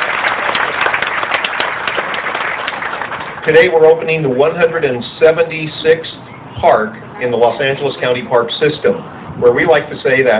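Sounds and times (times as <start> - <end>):
audience applause: 0.0 - 3.4
speech: 3.4 - 10.3.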